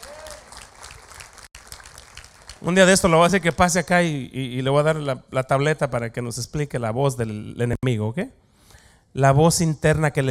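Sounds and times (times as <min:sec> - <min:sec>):
audience applause: 0:00.0 - 0:03.6
speech: 0:02.6 - 0:08.4, 0:09.2 - 0:10.2.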